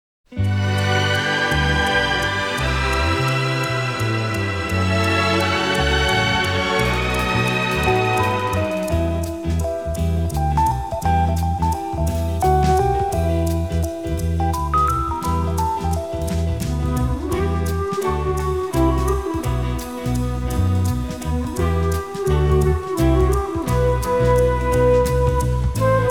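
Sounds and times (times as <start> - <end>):
strings: 0.3 - 26.1.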